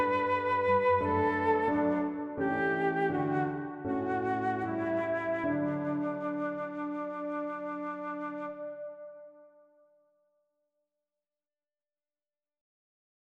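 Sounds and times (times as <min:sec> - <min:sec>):
piano playing hymns: 0:00.0 - 0:09.8
flute playing hymns: 0:00.0 - 0:09.9.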